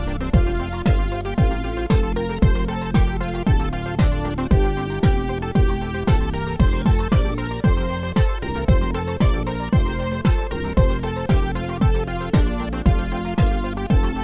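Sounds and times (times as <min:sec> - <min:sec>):
house dance music: 0:00.0 - 0:14.2.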